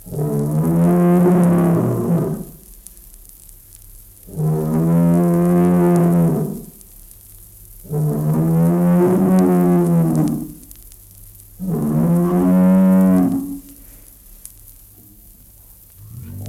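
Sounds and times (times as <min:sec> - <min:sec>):
bull bellowing a long deep moo: 0:00.0 - 0:02.5, 0:04.3 - 0:06.7, 0:07.9 - 0:10.6, 0:11.6 - 0:13.7, 0:16.0 - 0:16.4.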